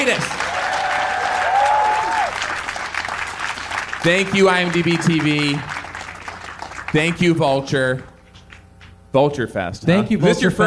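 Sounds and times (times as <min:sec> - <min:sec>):
speech: 0:00.0 - 0:00.5, 0:04.0 - 0:05.7, 0:06.9 - 0:08.1, 0:09.1 - 0:10.6
audience applause: 0:00.0 - 0:07.4.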